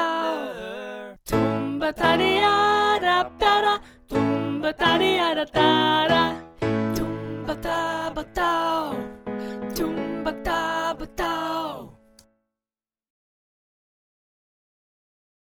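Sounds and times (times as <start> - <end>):
music, mezzo: 1.3 - 12.4.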